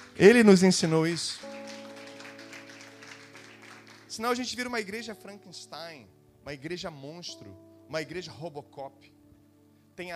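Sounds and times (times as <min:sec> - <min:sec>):
audience clapping: 0:00.0 - 0:04.7
speech: 0:00.2 - 0:01.5, 0:04.2 - 0:09.2, 0:10.0 - 0:10.1.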